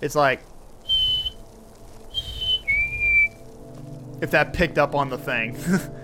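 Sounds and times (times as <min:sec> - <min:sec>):
speech: 0:00.0 - 0:00.5, 0:04.2 - 0:06.0
bird call: 0:00.8 - 0:01.4, 0:02.1 - 0:03.4.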